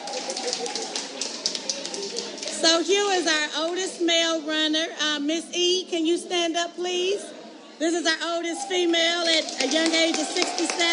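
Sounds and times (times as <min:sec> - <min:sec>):
audience applause: 0:00.0 - 0:02.8, 0:08.9 - 0:10.9
murmur of voices: 0:00.0 - 0:10.9
speech: 0:02.6 - 0:10.9.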